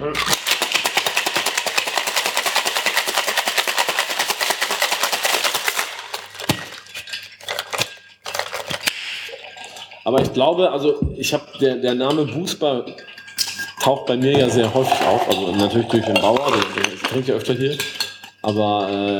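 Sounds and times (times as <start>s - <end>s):
shaker rattling: 0.2s - 9.8s, 14.4s - 19.1s
speech: 10.1s - 13.0s, 13.8s - 19.1s.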